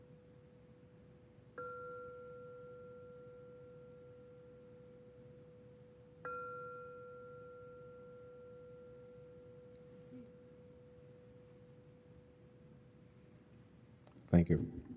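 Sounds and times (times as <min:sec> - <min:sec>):
low steady hum: 0:00.0 - 0:14.9
meditation bell ringing: 0:01.6 - 0:12.7
speech: 0:14.3 - 0:14.9.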